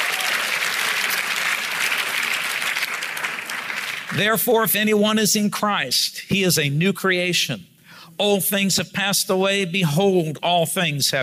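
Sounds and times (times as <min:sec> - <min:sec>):
audience clapping: 0:00.0 - 0:04.3
speech: 0:04.1 - 0:11.2.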